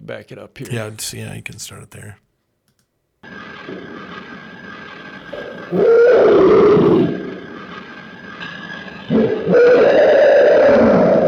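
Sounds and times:
speech: 0.1 - 2.3, 3.2 - 4.2, 5.3 - 7.3
recorded scream of unknown creature: 5.7 - 7.2, 9.1 - 11.2.

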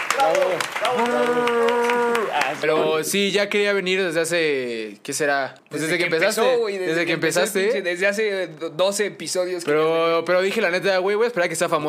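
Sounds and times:
applause: 0.0 - 2.7
voices cheering and shouting: 0.1 - 3.0
speech: 0.2 - 11.8.

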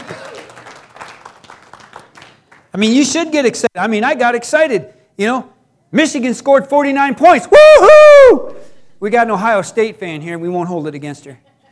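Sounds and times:
audience clapping: 0.0 - 2.8
speech: 2.8 - 11.5.

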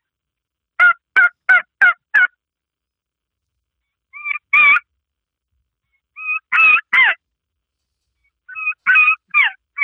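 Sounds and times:
M150 two-reed turkey call with slit and tear-out reed imitating turkey gobbling: 0.8 - 2.3, 4.1 - 4.9, 6.2 - 7.2, 8.5 - 9.8.

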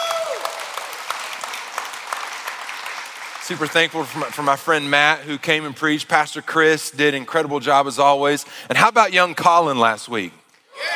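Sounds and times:
people clapping: 0.0 - 6.0
speech: 3.5 - 10.4.

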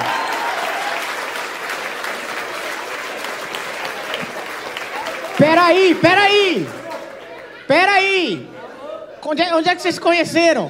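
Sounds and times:
audience applause: 0.0 - 7.5
speech: 5.6 - 6.8, 7.7 - 8.5, 9.2 - 10.6.

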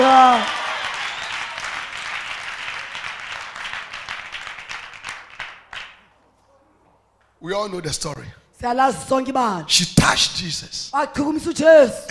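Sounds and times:
audience shouting: 0.0 - 2.0
audience clapping hands: 0.0 - 6.1
speech: 7.4 - 12.0.

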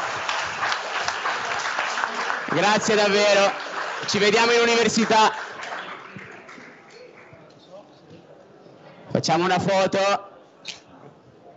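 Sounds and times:
audience applause: 0.0 - 7.3
speech: 2.5 - 5.4, 9.2 - 10.3.

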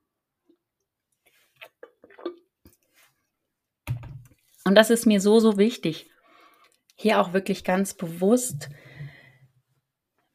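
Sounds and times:
person sipping a drink and swallowing: 1.3 - 2.8
speech: 4.7 - 6.1, 7.0 - 8.8.

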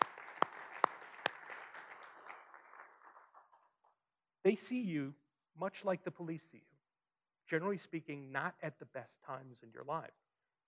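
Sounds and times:
loud claps: 0.0 - 1.7
crowd clapping: 0.0 - 3.4
speech: 4.4 - 6.7, 7.5 - 10.6.

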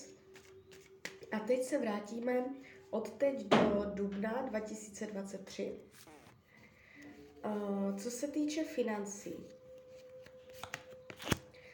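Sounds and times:
cards being shuffled: 0.3 - 1.3, 9.8 - 11.6
speech: 1.3 - 6.1, 7.4 - 9.6.

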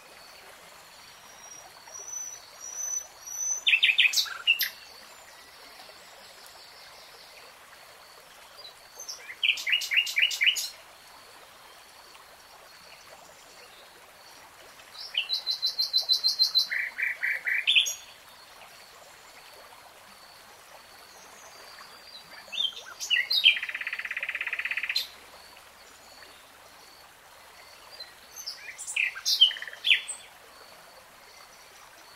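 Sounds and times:
nightingale song: 1.0 - 7.4, 8.6 - 10.8, 15.0 - 18.2, 21.2 - 25.2, 27.5 - 30.4.

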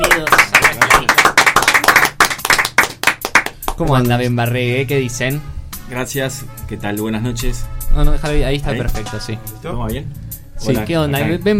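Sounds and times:
applause welcoming guests: 0.0 - 3.8
speech: 3.8 - 11.5.

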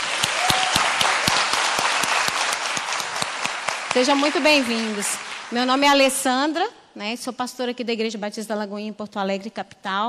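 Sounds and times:
church congregation at a Baptist service in Porto Alegre clapping for a visitor: 0.0 - 6.3
speech: 4.0 - 10.0.

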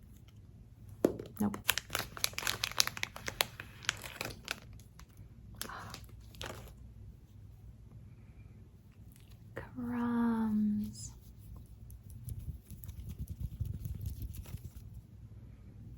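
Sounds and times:
low steady hum: 0.0 - 15.9
sharp crinkling bursts: 1.6 - 5.1.

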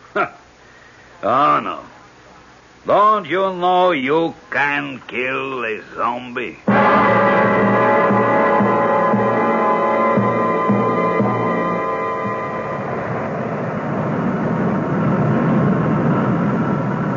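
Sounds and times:
speech: 0.2 - 0.4, 1.2 - 1.9, 2.8 - 7.3
airplane engine drone coming in to land: 6.6 - 17.1
broad rushing roar: 6.7 - 17.1.

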